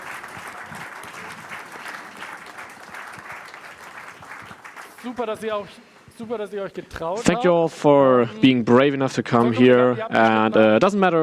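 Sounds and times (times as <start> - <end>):
audience applause: 0.0 - 5.6
speech: 5.0 - 11.2.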